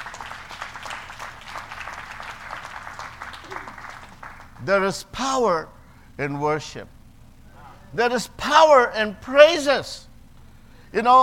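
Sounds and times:
audience clapping: 0.0 - 4.7
speech: 4.6 - 7.0, 7.9 - 10.1, 10.9 - 11.2.

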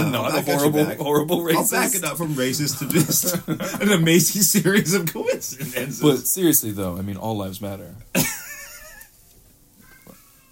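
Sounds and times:
laughter: 0.0 - 6.2, 8.2 - 9.1
speech: 0.1 - 8.4
cat: 9.8 - 10.4.

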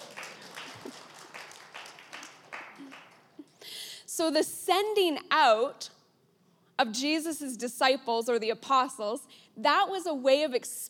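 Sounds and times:
audience clapping: 0.0 - 3.5
speech: 4.2 - 5.9, 6.8 - 10.8.

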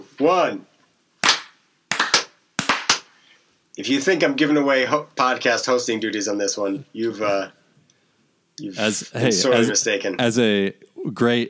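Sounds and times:
speech: 0.2 - 0.7, 3.8 - 7.6, 8.6 - 11.4
sharp hand claps: 1.2 - 3.2.

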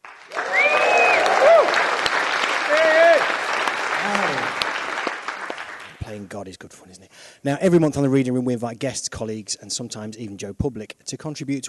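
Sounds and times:
crowd applauding: 0.0 - 6.1
voices whooping and cheering: 0.3 - 2.0, 2.6 - 3.3
speech: 6.1 - 11.6.

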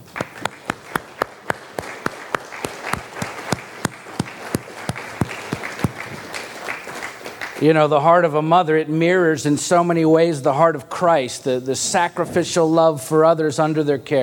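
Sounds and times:
audience round of applause: 0.0 - 7.6
speech: 7.6 - 14.2.

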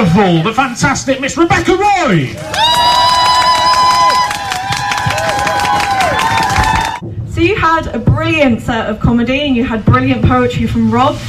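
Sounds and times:
speech: 0.2 - 2.9, 7.4 - 11.2
audience applause: 2.4 - 7.0.

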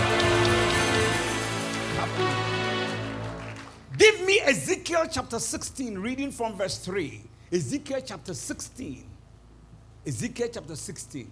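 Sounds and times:
audience clapping: 0.0 - 4.2
speech: 4.5 - 9.1, 10.0 - 11.3.

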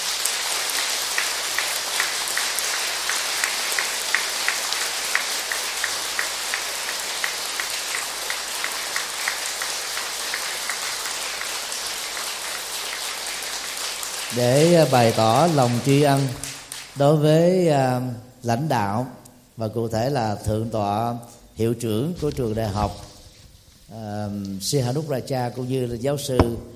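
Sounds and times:
crowd applauding loudly: 0.0 - 17.5
speech: 14.3 - 23.1, 23.9 - 26.7.

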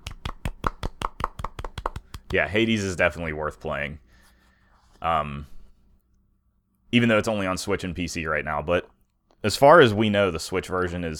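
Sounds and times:
soft golf clapping: 0.0 - 2.4
speech: 2.3 - 4.0, 5.0 - 5.5, 6.9 - 8.8, 9.4 - 11.1.

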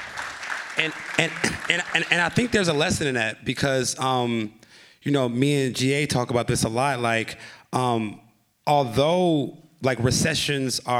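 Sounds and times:
applause: 0.0 - 3.0
speech: 0.8 - 10.9.

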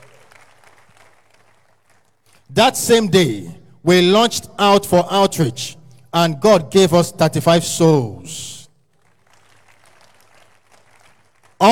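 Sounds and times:
audience clapping: 0.0 - 2.5, 8.8 - 11.7
speech: 2.5 - 8.6.

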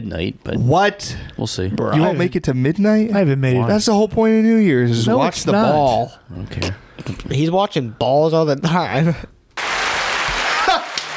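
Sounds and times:
speech: 0.1 - 9.3
applause sound effect: 9.6 - 11.1.

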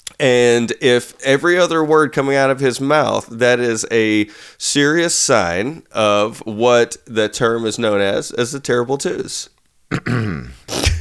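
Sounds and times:
speech: 0.2 - 10.9
person clearing throat: 9.9 - 10.9.

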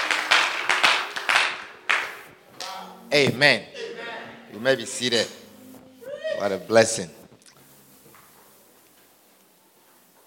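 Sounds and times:
audience clapping: 0.0 - 2.4
speech: 3.1 - 3.8, 4.5 - 5.4, 6.4 - 7.2
laughter: 3.6 - 4.6.

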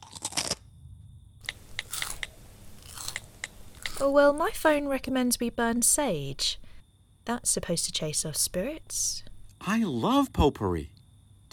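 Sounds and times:
person crunching crisps from a bag: 0.0 - 0.6, 1.4 - 5.0
speech: 4.0 - 6.6, 7.2 - 11.5.

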